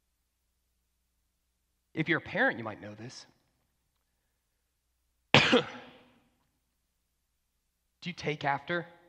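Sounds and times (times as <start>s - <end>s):
speech: 2.0s - 3.4s, 5.5s - 5.8s, 8.0s - 9.0s
person coughing: 5.3s - 6.1s.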